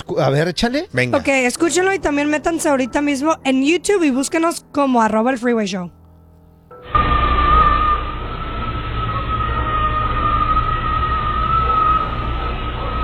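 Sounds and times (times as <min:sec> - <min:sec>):
speech: 0:00.0 - 0:06.0
low rumbling background: 0:01.2 - 0:13.0
endless high wailing scream: 0:06.8 - 0:13.0.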